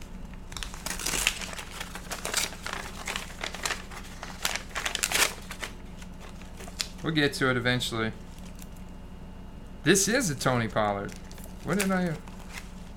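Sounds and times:
pack of sports trading cards being ripped open: 0.5s - 7.0s, 11.0s - 12.9s
speech: 7.0s - 8.2s, 9.8s - 12.3s.

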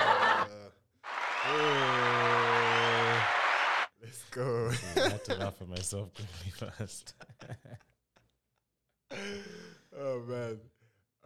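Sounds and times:
laughter: 0.0s - 0.6s, 4.7s - 5.6s, 6.2s - 7.9s
applause: 1.0s - 3.9s
speech: 4.4s - 7.7s, 10.2s - 10.7s.

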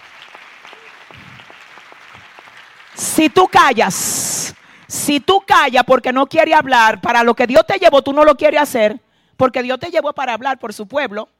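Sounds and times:
audience applause: 0.0s - 3.5s
speech: 3.2s - 11.3s.

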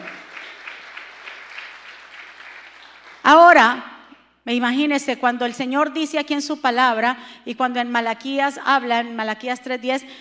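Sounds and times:
loud applause: 0.0s - 3.3s
speech: 3.3s - 3.9s, 4.5s - 10.1s.

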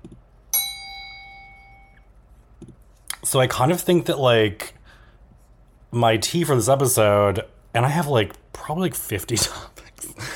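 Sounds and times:
bell sound effect: 0.6s - 2.0s
speech: 3.2s - 4.8s, 5.9s - 9.7s.

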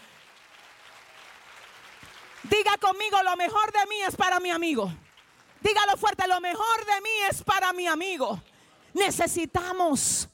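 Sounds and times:
audience applause: 0.0s - 3.8s
speech: 2.4s - 5.0s, 5.6s - 10.3s.

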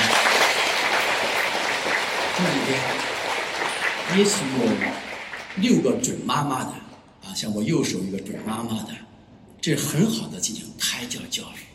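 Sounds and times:
audience applause: 0.0s - 6.1s
speech: 2.4s - 3.1s, 4.1s - 9.0s, 9.6s - 11.7s.

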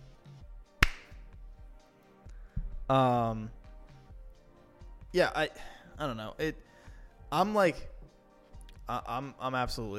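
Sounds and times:
hand clapping: 0.8s - 1.2s
speech: 2.9s - 3.6s, 5.1s - 6.7s, 7.3s - 7.9s, 8.9s - 9.9s.

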